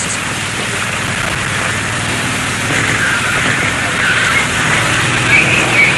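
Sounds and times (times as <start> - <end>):
large army helicopter flying overhead into the prison: 0.0 - 5.9.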